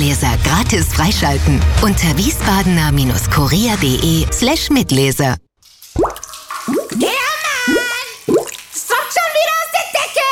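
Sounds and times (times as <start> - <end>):
speech: 0.1 - 5.4
water dripping from a leak: 5.6 - 10.2.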